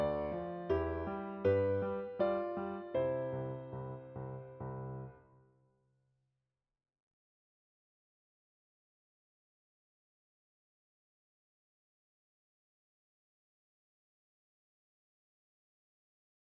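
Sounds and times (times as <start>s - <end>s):
electric piano: 0.0s - 5.3s.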